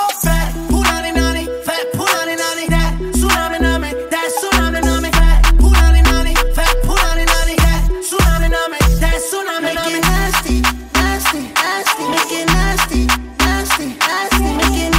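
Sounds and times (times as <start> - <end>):
ringtone: 0.2 - 10.6, 11.6 - 14.9.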